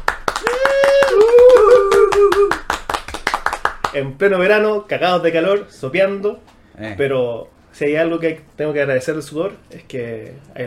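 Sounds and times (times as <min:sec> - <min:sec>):
hand clapping: 0:00.0 - 0:04.0
speech: 0:03.9 - 0:10.6.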